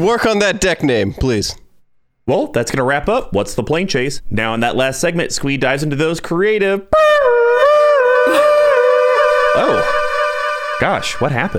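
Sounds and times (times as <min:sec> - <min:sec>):
speech: 0:00.0 - 0:01.6, 0:02.3 - 0:07.2, 0:09.6 - 0:10.0, 0:10.8 - 0:11.5
loud tornado siren wailing: 0:07.0 - 0:11.5.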